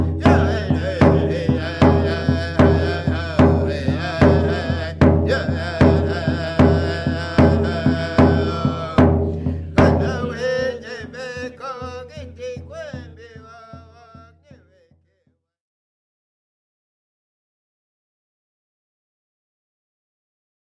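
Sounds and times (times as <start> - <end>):
Plains Indian song: 0.0 - 15.0.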